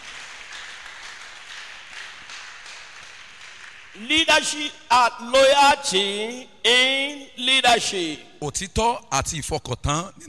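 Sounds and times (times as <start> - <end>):
audience applause: 0.0 - 4.0
speech: 4.0 - 10.2.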